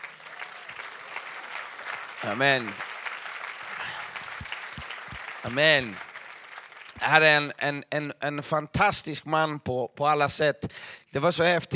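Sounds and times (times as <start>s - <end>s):
audience applause: 0.0s - 7.4s
speech: 2.2s - 2.9s, 5.4s - 6.1s, 7.0s - 11.7s.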